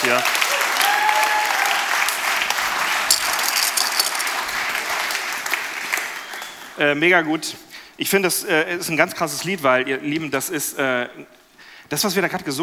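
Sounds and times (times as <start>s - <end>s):
speech: 0.0s - 0.4s, 6.8s - 12.6s
audience applause for the band: 0.0s - 6.8s.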